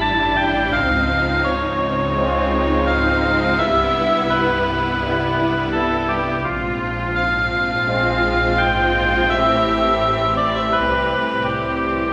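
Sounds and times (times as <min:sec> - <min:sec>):
dungeon music loop: 0:00.0 - 0:12.1.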